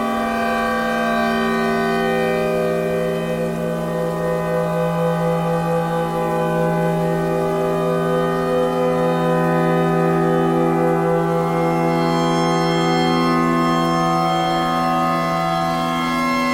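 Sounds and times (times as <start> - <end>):
clarinet: 0.0 - 16.5
tornado siren: 0.0 - 16.5.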